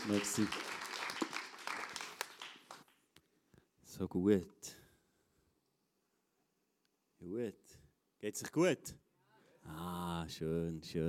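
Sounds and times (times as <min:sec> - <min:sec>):
speech: 0:00.0 - 0:00.8, 0:04.0 - 0:04.8, 0:07.2 - 0:09.0, 0:09.6 - 0:11.0
audience applause: 0:00.0 - 0:02.8.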